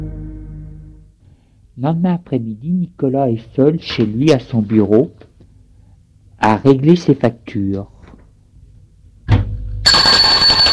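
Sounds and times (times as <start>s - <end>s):
speech: 1.8s - 5.3s, 6.4s - 7.9s
electric doorbell ringing: 9.9s - 10.7s.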